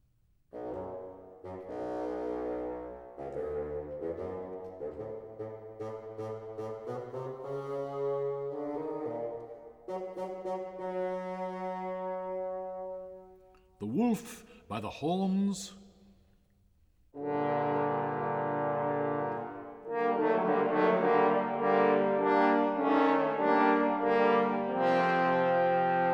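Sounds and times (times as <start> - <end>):
bassoon playing a melody: 0.5 - 14.1, 17.2 - 26.1
speech: 14.1 - 15.8.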